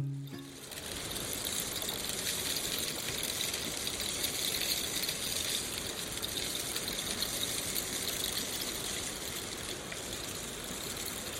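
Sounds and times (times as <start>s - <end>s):
rain stick rattling: 0.1s - 11.3s.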